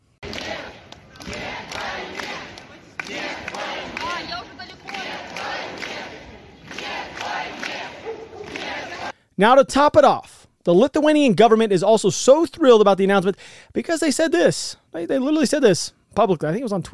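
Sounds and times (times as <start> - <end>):
large crowd of protesters shouting no to the war: 0.2 - 9.1
speech: 9.4 - 16.9.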